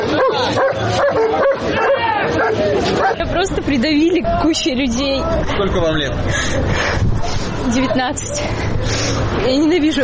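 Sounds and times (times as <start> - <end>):
police service dog barking and yelping: 0.0 - 3.2
crowd noise and overlapping voices: 0.0 - 10.0
speech: 3.2 - 10.0.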